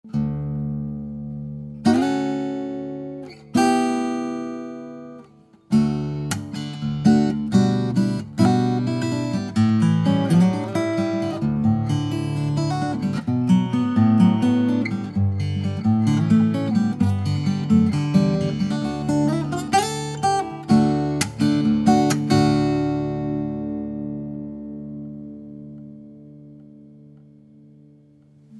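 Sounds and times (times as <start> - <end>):
guitar: 0.0 - 28.5.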